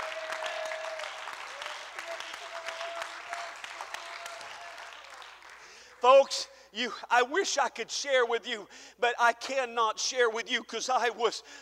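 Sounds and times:
audience clapping hands: 0.0 - 6.1
speech: 6.0 - 11.6.

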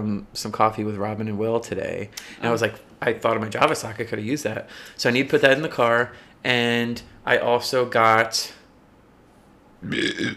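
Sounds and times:
speech: 0.0 - 8.6, 9.8 - 10.3
person burping after drinking seltzer: 9.8 - 10.3.

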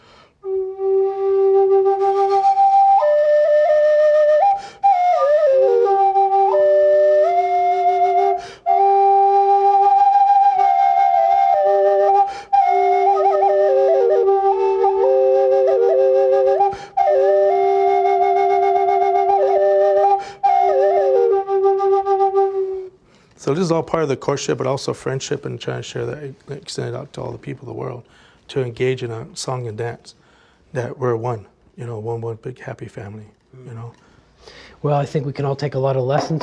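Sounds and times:
double A-frame flute playing: 0.4 - 23.0
speech: 23.6 - 36.4.

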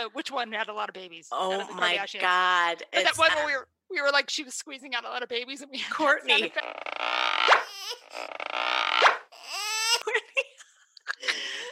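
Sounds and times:
speech: 0.0 - 9.2, 9.9 - 10.6
laughter: 5.9 - 6.6, 10.0 - 11.7
squeak sound effect: 6.3 - 9.8.

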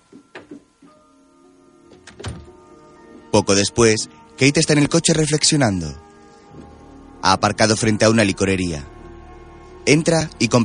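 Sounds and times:
door closing: 1.9 - 2.6
speech: 3.3 - 6.0, 7.2 - 8.9, 9.8 - 10.6.

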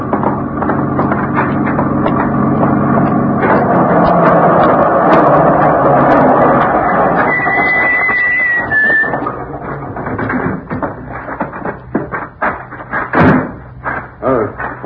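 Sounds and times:
truck arriving, engine running: 0.0 - 14.8.

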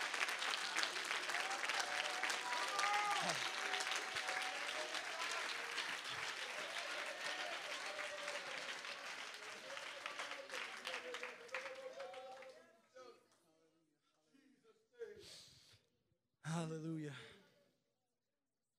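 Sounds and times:
audience hand clapping: 0.0 - 12.6.

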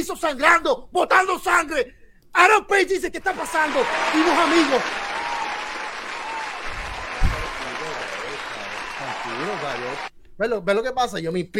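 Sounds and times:
speech: 0.0 - 5.1, 9.3 - 11.5
professional wrestling crowd applause: 3.3 - 10.1.

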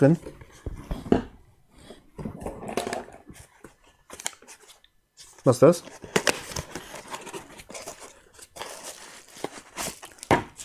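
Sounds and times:
speech: 0.0 - 0.4, 5.5 - 6.1
packaging rustling while unpacking a parcel: 2.7 - 10.6.

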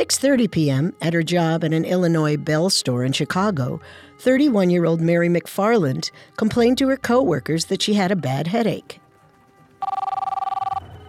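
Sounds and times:
speech: 0.0 - 9.0
office telephone ringing: 9.8 - 10.9.

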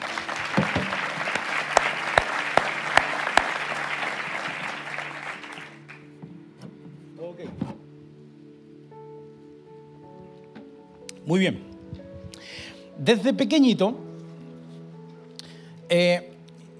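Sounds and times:
audience applause: 0.0 - 6.1
speech: 11.3 - 11.7, 13.0 - 14.0, 15.9 - 16.3.

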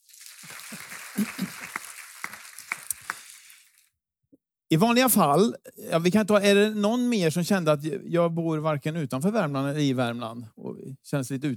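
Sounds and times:
audience applause: 0.0 - 3.7
speech: 1.2 - 1.5, 4.7 - 11.5.

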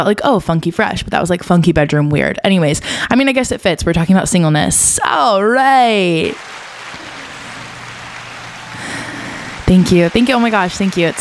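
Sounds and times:
speech: 0.0 - 6.6, 9.7 - 11.2
recorded crowd applause: 6.2 - 11.2.

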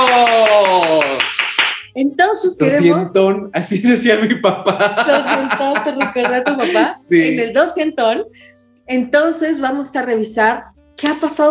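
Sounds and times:
hands clapping: 0.0 - 2.0, 4.8 - 7.4, 11.0 - 11.4
speech: 2.0 - 11.4
laughter: 2.6 - 7.6.

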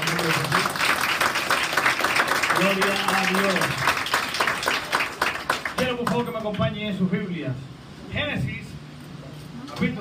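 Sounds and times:
audience applause: 0.0 - 6.1
speech: 2.6 - 3.9, 6.1 - 8.6.

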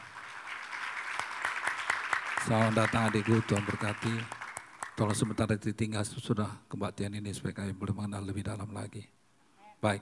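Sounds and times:
audience applause: 0.0 - 5.4
speech: 2.4 - 4.4, 5.0 - 9.2, 9.8 - 10.0.

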